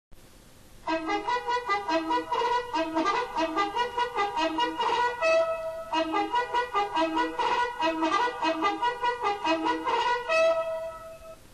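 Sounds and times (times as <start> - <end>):
military bugle call: 0.9 - 11.4.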